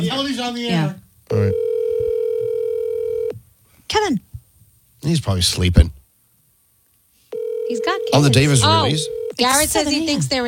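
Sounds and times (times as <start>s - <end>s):
speech: 0.0s - 1.6s, 4.0s - 4.3s, 5.0s - 6.0s, 7.7s - 10.4s
phone ringback tone on an outgoing call: 1.3s - 3.3s, 7.3s - 9.4s.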